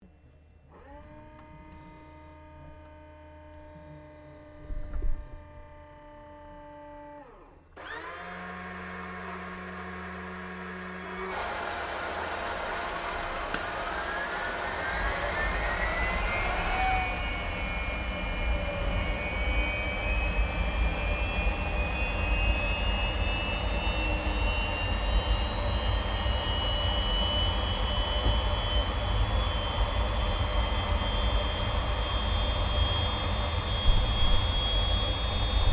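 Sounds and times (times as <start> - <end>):
CA-27 Sabre aircraft engine startup heard from interior: 0.7 - 35.7.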